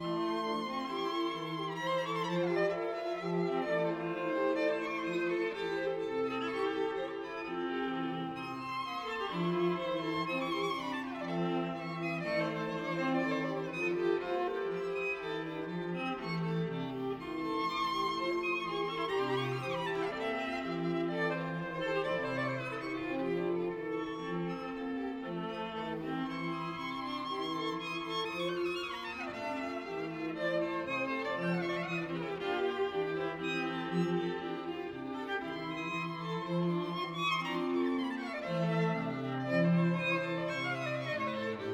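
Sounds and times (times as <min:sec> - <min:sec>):
string quartet: 0:00.0 - 0:41.7.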